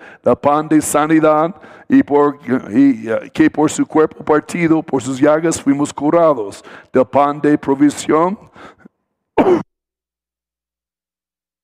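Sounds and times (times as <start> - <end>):
speech: 0.2 - 8.8, 9.4 - 9.6
throat clearing: 9.4 - 9.7.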